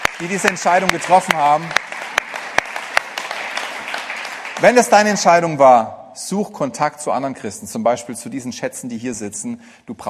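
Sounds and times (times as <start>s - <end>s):
audience applause: 0.0s - 5.3s
speech: 0.2s - 1.9s, 4.6s - 10.0s.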